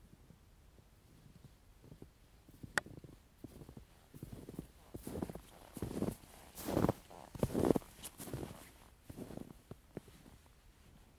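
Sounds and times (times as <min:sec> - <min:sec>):
footsteps in snow: 0:03.4 - 0:11.1.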